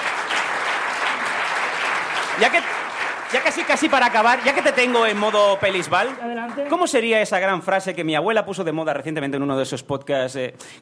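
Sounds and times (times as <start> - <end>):
audience applause: 0.0 - 7.5
speech: 2.4 - 10.7.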